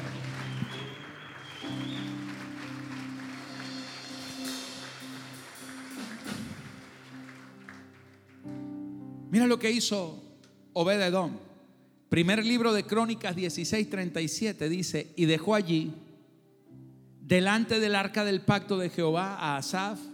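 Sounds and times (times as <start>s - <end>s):
audience applause: 0.0s - 8.6s
speech: 9.3s - 10.2s, 10.8s - 11.5s, 12.1s - 16.0s, 17.3s - 20.1s.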